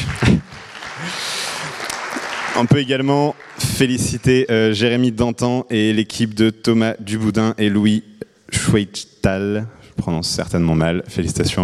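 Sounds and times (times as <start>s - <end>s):
audience applause: 0.0s - 4.5s
speech: 0.2s - 1.2s, 2.6s - 11.6s.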